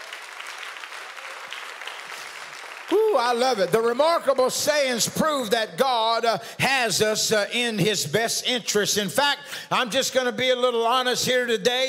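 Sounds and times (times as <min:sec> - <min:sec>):
audience hand clapping: 0:00.0 - 0:04.5
speech: 0:03.1 - 0:11.8.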